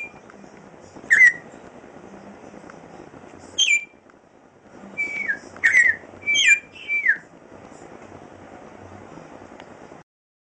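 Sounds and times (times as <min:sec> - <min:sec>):
Venezuelan troupial song: 0:01.1 - 0:01.5, 0:03.6 - 0:04.0, 0:05.0 - 0:07.3.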